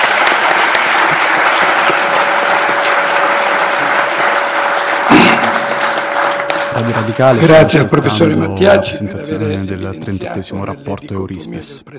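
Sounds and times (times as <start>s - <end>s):
audience applause: 0.0s - 8.4s
speech: 6.9s - 11.9s.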